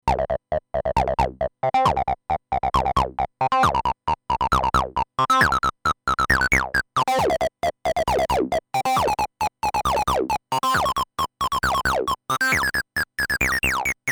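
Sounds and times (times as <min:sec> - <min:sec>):
Roland TB-03 bass synthesizer with overdrive: 0:00.0 - 0:14.0.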